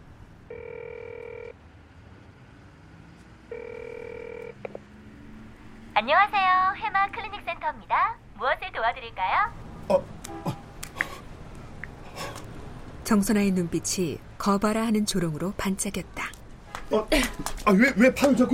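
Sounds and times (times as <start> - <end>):
phone ringback tone: 0.5 - 1.6, 3.5 - 4.7
speech: 6.0 - 10.6, 13.1 - 18.5.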